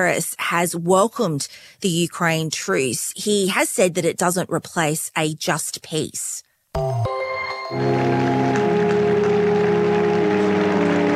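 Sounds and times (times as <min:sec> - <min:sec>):
speech: 0:00.0 - 0:06.4, 0:07.7 - 0:08.7
large crowd of mourners applauding a coffin: 0:07.6 - 0:11.1.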